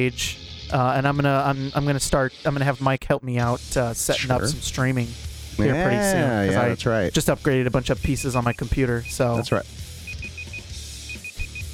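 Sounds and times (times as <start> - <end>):
speech: 0.0 - 9.9
game PC timer starting beep: 8.4 - 11.7.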